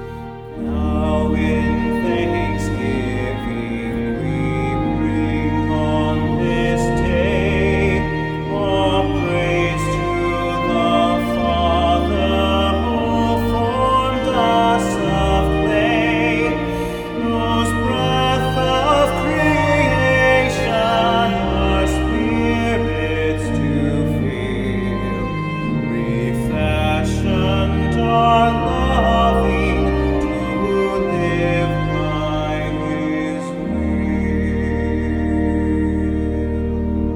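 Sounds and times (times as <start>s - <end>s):
man's voice: 0.5s - 37.1s.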